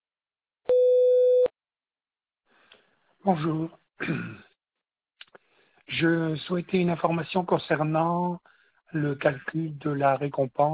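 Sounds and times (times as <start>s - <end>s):
mid-pitch electronic voicemail beep: 0.7s - 1.5s
speech: 3.2s - 4.5s, 5.9s - 10.7s.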